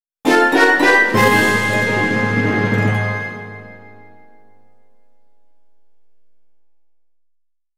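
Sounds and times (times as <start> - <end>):
short fanfare: 0.3 - 4.4.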